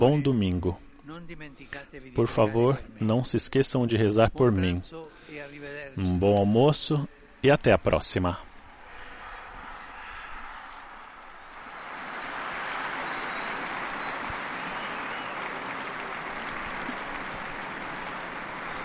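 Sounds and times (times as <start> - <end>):
speech: 0.0 - 8.5
large crowd applauding in open square: 8.8 - 18.8.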